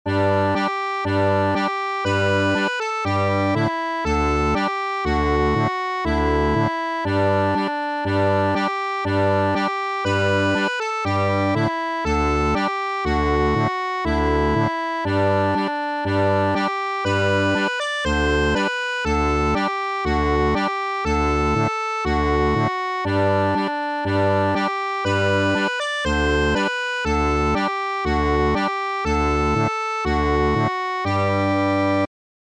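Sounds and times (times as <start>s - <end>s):
gavotte: 0.1s - 32.1s.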